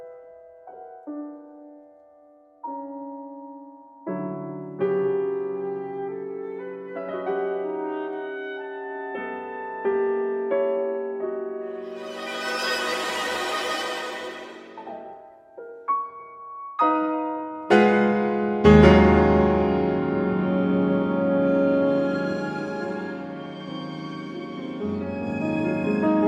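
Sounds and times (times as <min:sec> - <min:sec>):
piano concerto: 0:00.0 - 0:26.2.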